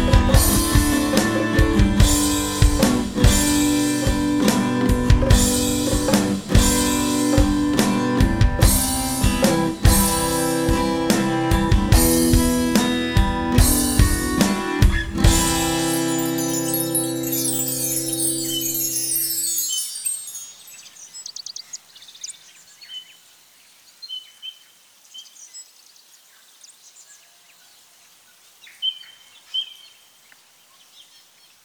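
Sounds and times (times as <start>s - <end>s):
acoustic guitar: 0.0s - 19.6s.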